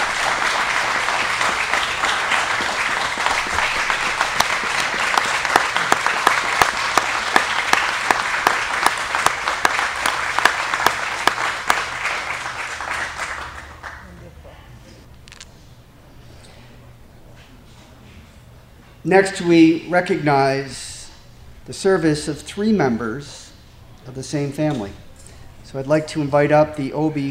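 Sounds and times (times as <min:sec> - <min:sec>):
crowd applauding: 0:00.0 - 0:14.2
speech: 0:19.1 - 0:20.8, 0:21.7 - 0:23.4, 0:24.1 - 0:25.0, 0:25.7 - 0:27.2.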